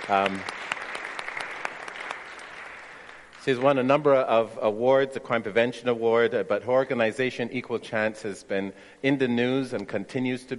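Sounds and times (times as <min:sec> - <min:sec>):
audience applause: 0:00.0 - 0:03.2
speech: 0:00.1 - 0:00.6, 0:03.4 - 0:10.5.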